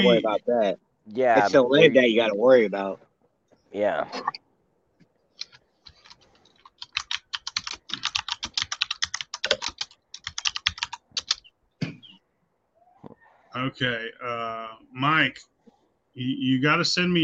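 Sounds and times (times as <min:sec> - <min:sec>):
speech: 0:00.0 - 0:03.0, 0:03.7 - 0:04.4, 0:13.5 - 0:15.5, 0:16.2 - 0:17.2
typing on a computer keyboard: 0:05.4 - 0:11.4.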